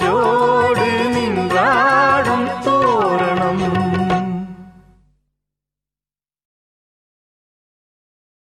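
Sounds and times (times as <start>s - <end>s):
Tamil duet singing: 0.0s - 4.8s.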